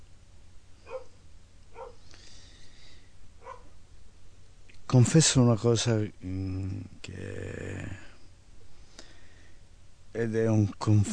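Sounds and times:
low steady background hum: 0:00.0 - 0:11.1
pet dogs barking: 0:00.8 - 0:02.0, 0:03.4 - 0:03.8
dog whining: 0:01.8 - 0:02.0
speech: 0:04.9 - 0:08.1, 0:10.2 - 0:11.1.

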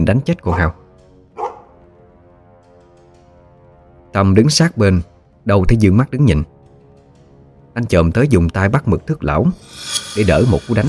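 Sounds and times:
speech: 0:00.0 - 0:00.8, 0:04.2 - 0:06.5, 0:07.8 - 0:10.8
dog barking: 0:00.4 - 0:00.8, 0:01.4 - 0:01.8.

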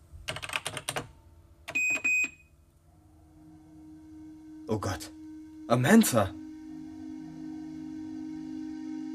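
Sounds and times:
clicking keystrokes on a computer keyboard: 0:00.3 - 0:01.1
speech: 0:04.7 - 0:06.4.

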